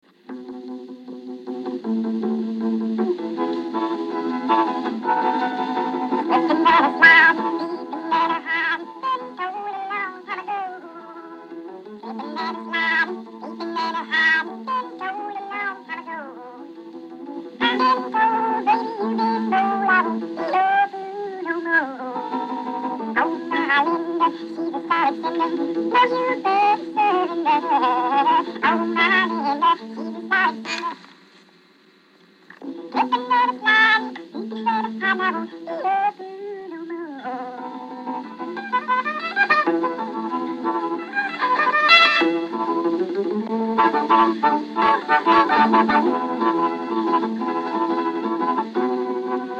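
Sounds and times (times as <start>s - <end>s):
music played at half speed: 0.0s - 49.5s.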